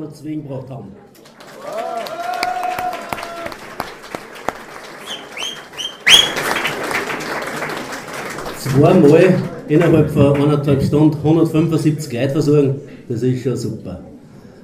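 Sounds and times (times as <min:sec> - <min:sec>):
speech: 0:00.0 - 0:01.8, 0:08.6 - 0:14.1
audience applause: 0:01.2 - 0:10.1.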